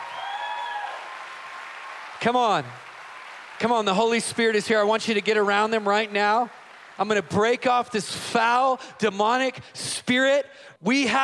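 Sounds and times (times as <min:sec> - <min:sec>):
high cheers and a sustained whoop: 0:00.0 - 0:02.2
audience applauding: 0:00.0 - 0:08.8
speech: 0:02.2 - 0:02.9, 0:03.6 - 0:11.2.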